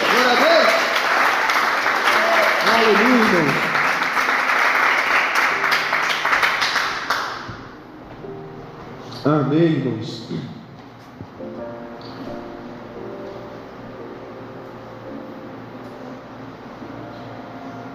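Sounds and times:
audience applause: 0:00.0 - 0:07.7
speech: 0:02.8 - 0:03.6, 0:09.2 - 0:10.5.

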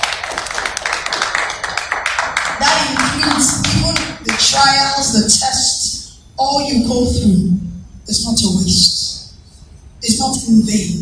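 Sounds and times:
hand clapping: 0:00.0 - 0:04.5
speech: 0:04.6 - 0:05.8, 0:06.4 - 0:09.0, 0:10.2 - 0:11.0.

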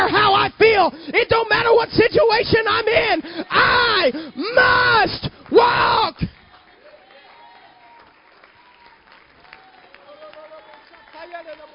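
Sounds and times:
speech: 0:00.8 - 0:05.0
audience clapping: 0:05.2 - 0:11.7.

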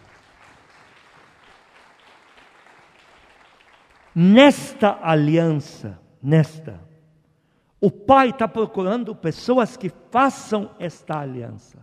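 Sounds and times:
audience applause: 0:00.0 - 0:04.2
speech: 0:04.2 - 0:06.9, 0:07.8 - 0:11.8.

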